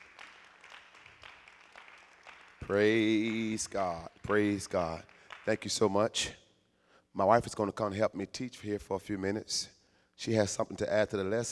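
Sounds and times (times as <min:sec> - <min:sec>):
audience clapping hands loudly: 0:00.0 - 0:06.0
speech: 0:02.7 - 0:06.4, 0:07.2 - 0:11.5.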